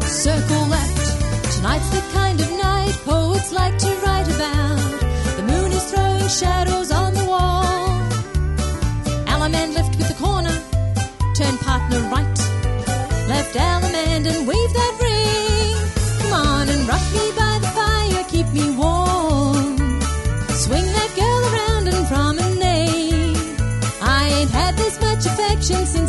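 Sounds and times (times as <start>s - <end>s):
vocals: 0.1s - 8.3s, 9.0s - 26.0s.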